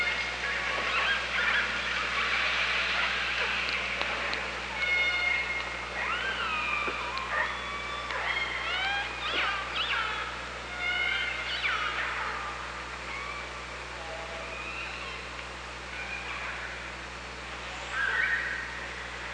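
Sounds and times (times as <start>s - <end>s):
killer whale calls underwater: 0.0s - 11.9s
low hum: 0.0s - 19.3s.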